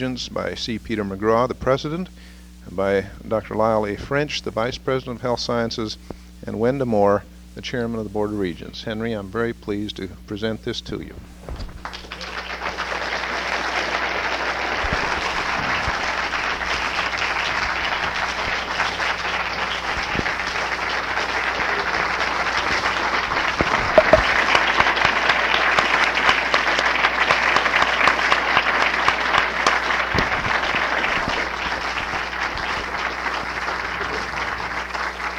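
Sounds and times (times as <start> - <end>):
speech: 0.0 - 11.6
audience applause: 11.8 - 35.3.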